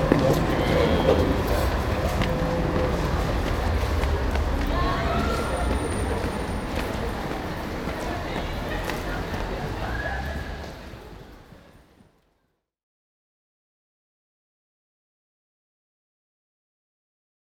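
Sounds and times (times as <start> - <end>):
tram in public space: 0.0 - 12.4.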